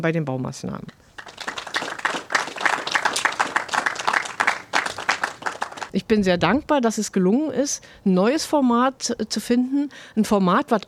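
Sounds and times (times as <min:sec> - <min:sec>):
speech: 0:00.0 - 0:01.3, 0:06.0 - 0:10.8
audience applause: 0:01.1 - 0:05.9.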